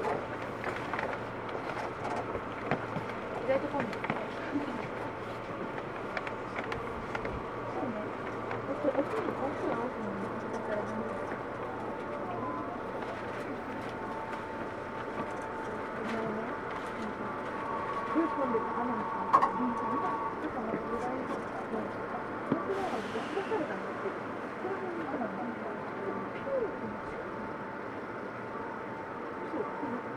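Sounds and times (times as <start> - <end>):
Tokyu 2000 series train rumbling between Shibuya and Azamino: 0.0 - 30.1
murmuring voices: 0.0 - 30.1
low hum: 3.8 - 23.0
thin whining tone: 11.8 - 23.0.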